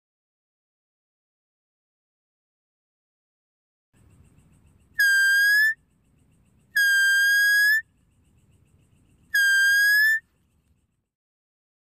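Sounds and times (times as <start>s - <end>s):
deer whistled calls: 4.9s - 5.8s, 6.7s - 7.9s, 9.3s - 10.3s.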